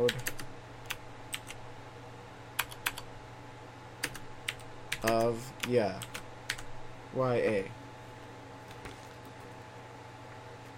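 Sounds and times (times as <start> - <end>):
typing on a computer keyboard: 0.0 - 1.6, 2.6 - 3.0, 4.0 - 6.7
faint steady hum: 0.0 - 10.7
speech: 5.0 - 6.2, 7.1 - 7.8.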